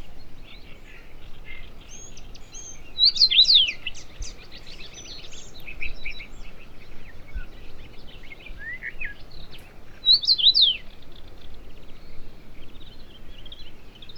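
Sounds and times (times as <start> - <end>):
common rosefinch song: 1.9 - 10.9.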